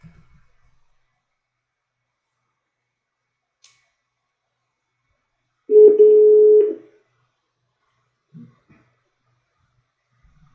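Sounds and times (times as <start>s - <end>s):
phone call ringback tone: 5.7s - 6.8s.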